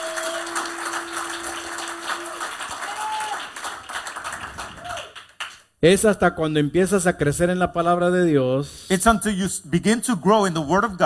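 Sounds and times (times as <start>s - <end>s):
voices cheering: 0.0s - 3.8s, 4.6s - 5.2s
audience applause: 0.0s - 5.6s
speech: 5.8s - 11.0s.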